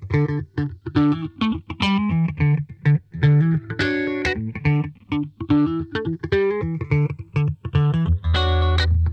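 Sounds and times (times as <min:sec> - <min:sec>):
funk guitar: 0:00.0 - 0:09.1.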